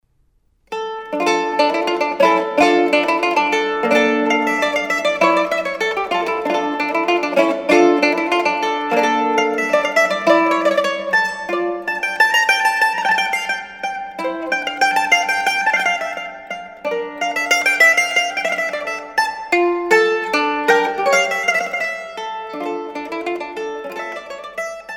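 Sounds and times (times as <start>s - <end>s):
mandolin playing a suite allemande: 0.7s - 24.9s.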